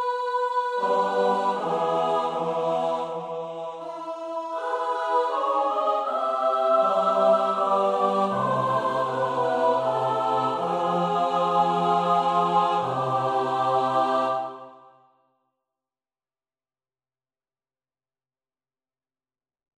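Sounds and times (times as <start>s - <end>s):
SATB choir singing: 0.0s - 15.0s.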